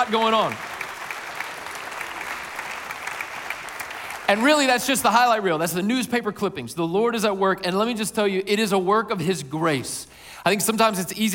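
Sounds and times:
speech: 0:00.0 - 0:00.7, 0:04.3 - 0:11.3
audience applauding: 0:00.0 - 0:05.0.

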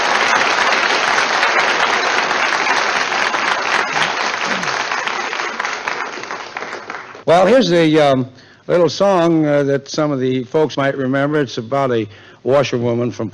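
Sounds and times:
audience ovation for a pianist at a show: 0:00.0 - 0:07.3
speech: 0:07.3 - 0:13.3.

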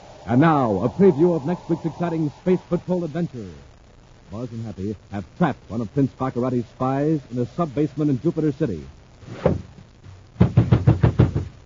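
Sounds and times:
speech: 0:00.3 - 0:03.7, 0:04.3 - 0:09.6
pounding on a door: 0:10.4 - 0:11.5.

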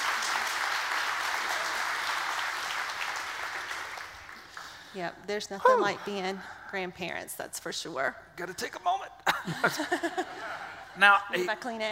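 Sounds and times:
crowd applauding: 0:00.0 - 0:04.9
speech: 0:05.0 - 0:11.9
laughter: 0:09.3 - 0:11.0.

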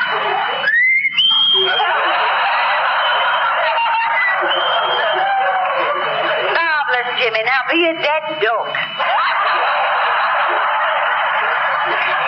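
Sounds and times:
laughter: 0:00.0 - 0:07.0, 0:08.7 - 0:12.2
whistled imitation of nightingale song: 0:00.6 - 0:01.8
speech: 0:07.5 - 0:09.6.

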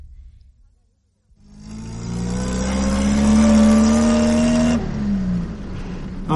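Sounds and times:
car engine revving while driving: 0:01.3 - 0:06.3.

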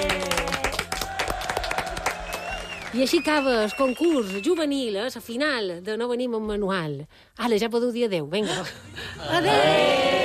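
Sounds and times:
audience applause: 0:00.0 - 0:04.6
speech: 0:03.0 - 0:10.1.

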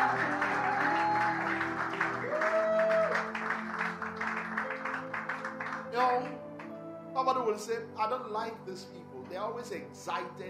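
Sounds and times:
audience clapping: 0:00.0 - 0:06.8
speech: 0:07.5 - 0:10.4.

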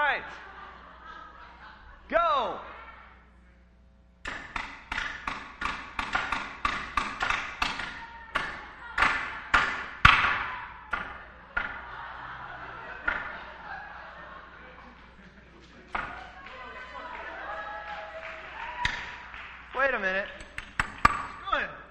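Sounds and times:
laughter: 0:00.0 - 0:03.3, 0:08.0 - 0:09.5, 0:10.4 - 0:19.3
hammer striking a nail: 0:04.2 - 0:11.8, 0:20.4 - 0:21.4.

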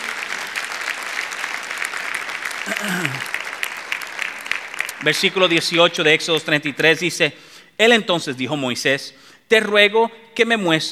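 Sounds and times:
audience applauding: 0:00.0 - 0:05.1
speech: 0:02.7 - 0:03.3, 0:05.0 - 0:10.8.

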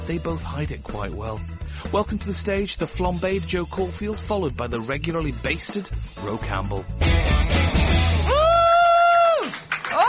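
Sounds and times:
speech: 0:00.1 - 0:07.5
crowd screaming: 0:08.2 - 0:10.0.

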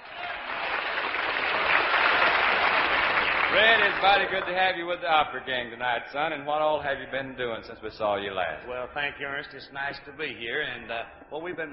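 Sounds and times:
audience applause welcoming a guest: 0:00.0 - 0:04.8
speech: 0:03.5 - 0:11.7.

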